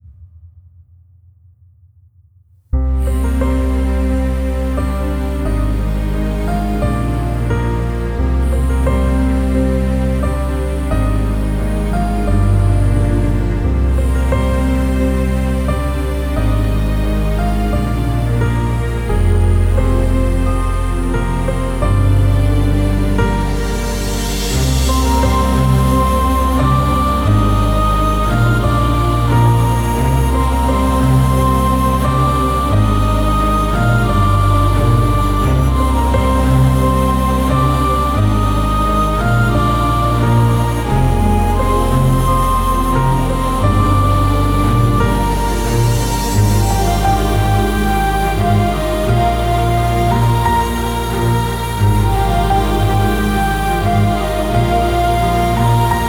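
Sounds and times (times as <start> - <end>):
orchestral background music cover: 2.8 - 56.0.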